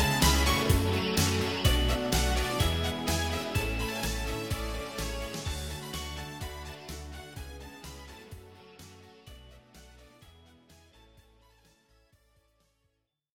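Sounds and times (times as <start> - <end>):
karaoke singing: 0.0 - 6.6.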